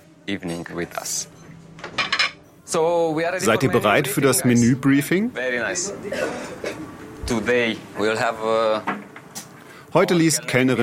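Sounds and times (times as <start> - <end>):
speech: 0.3 - 2.0, 2.7 - 9.0, 9.9 - 10.8
plates and cutlery clinking as a table is set for dinner: 1.4 - 2.4.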